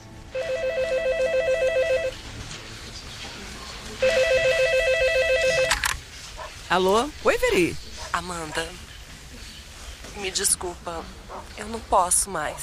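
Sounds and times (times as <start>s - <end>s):
telephone ringing: 0.3s - 2.2s, 4.0s - 5.9s
speech: 6.7s - 8.9s, 10.2s - 12.6s.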